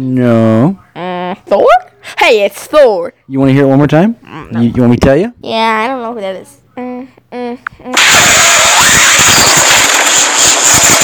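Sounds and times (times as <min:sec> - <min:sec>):
speech: 0:00.0 - 0:00.8, 0:01.5 - 0:09.6
force lightning sound effect electric crackle: 0:08.0 - 0:11.0.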